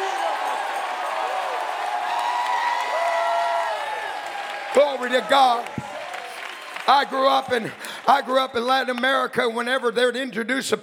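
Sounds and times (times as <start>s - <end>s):
audience shouting praise and cheering: 0.0s - 8.5s
speech: 4.7s - 5.8s, 6.9s - 10.8s.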